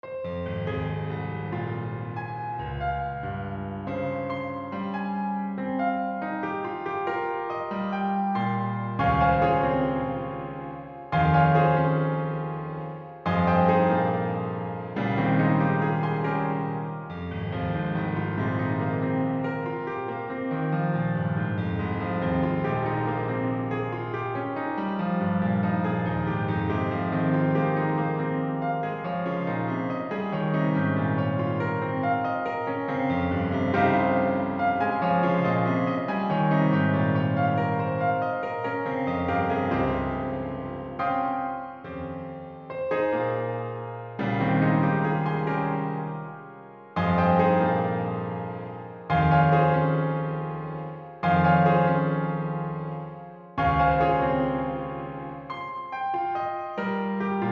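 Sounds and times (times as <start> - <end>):
prelude in F minor: 0.0 - 57.5.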